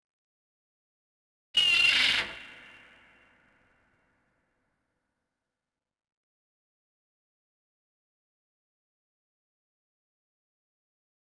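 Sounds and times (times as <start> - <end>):
seagull: 1.6 - 2.7.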